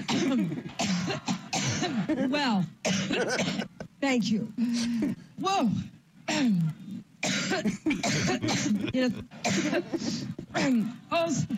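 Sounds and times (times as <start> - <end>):
phlegmy congested coughing: 0.0 - 4.0, 7.2 - 11.5
speech: 0.0 - 11.5.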